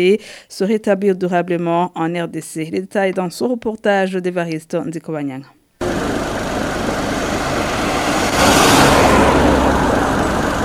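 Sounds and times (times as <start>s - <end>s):
speech: 0.0s - 5.6s
vehicles driving on the Bujumbura-Uvira road: 5.8s - 10.6s.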